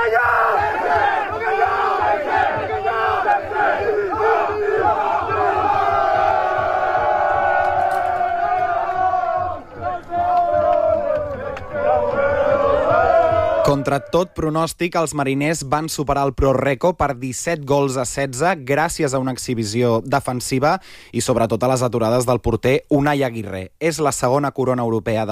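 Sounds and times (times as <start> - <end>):
crowd chanting a war cry in Malta: 0.0 - 14.2
speech: 13.7 - 25.3.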